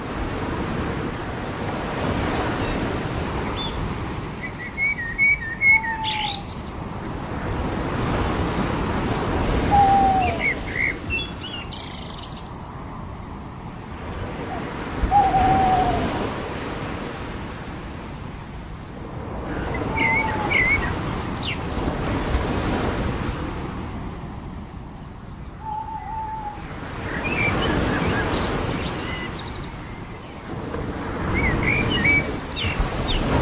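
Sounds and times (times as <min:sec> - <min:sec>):
ocean waves on the beach: 0:00.0 - 0:33.4
birds on the beach: 0:02.4 - 0:06.9, 0:09.6 - 0:13.1, 0:18.6 - 0:21.7, 0:25.2 - 0:30.5, 0:31.2 - 0:33.4.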